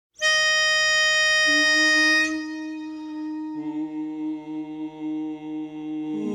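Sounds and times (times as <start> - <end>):
mono lead melody: 0.2 - 5.0.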